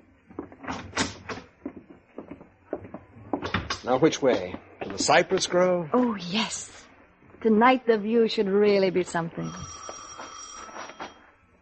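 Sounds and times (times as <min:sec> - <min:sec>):
speech: 0:03.8 - 0:06.8, 0:07.4 - 0:09.8
telephone ringing: 0:09.0 - 0:11.4.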